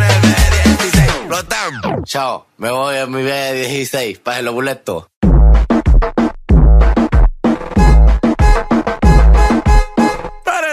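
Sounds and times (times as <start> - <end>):
reggaeton music: 0.0 - 2.1, 5.2 - 10.6.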